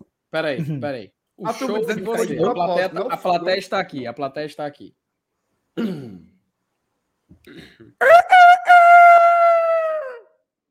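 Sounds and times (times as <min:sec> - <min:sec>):
speech: 0:00.3 - 0:05.0, 0:05.8 - 0:06.0, 0:07.4 - 0:09.2
voice imitating a rooster crowing: 0:08.0 - 0:10.5.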